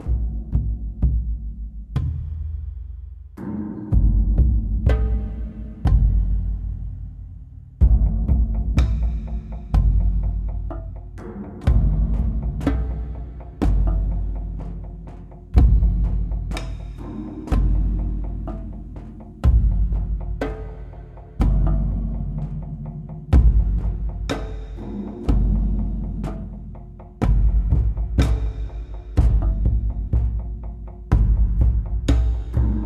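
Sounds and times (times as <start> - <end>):
drum track: 0.0 - 32.8.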